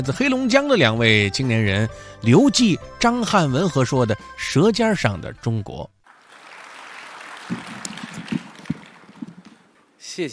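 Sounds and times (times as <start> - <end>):
speech: 0.0 - 6.0, 7.5 - 7.7, 10.2 - 10.3
audience applause: 6.1 - 9.8.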